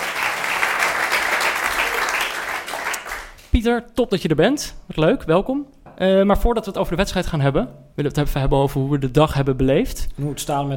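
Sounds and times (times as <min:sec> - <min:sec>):
audience applause: 0:00.0 - 0:03.4
speech: 0:03.6 - 0:10.7.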